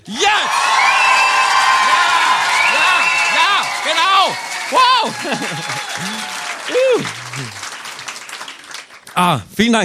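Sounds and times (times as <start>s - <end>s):
audience whoops and shouted voices: 0.0s - 7.6s
audience applause at an evening show in Kreilsheim: 0.2s - 9.3s
speech: 4.7s - 7.6s, 9.2s - 9.8s
laughter: 4.7s - 8.8s.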